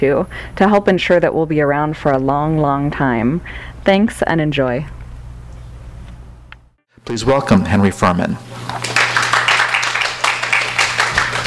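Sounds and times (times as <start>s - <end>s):
speech: 0.0s - 5.0s, 7.1s - 8.9s
crowd clapping: 8.5s - 11.4s.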